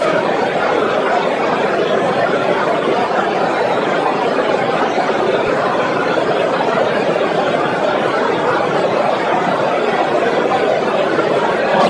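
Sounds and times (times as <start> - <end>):
crowd: 0.0 - 11.8.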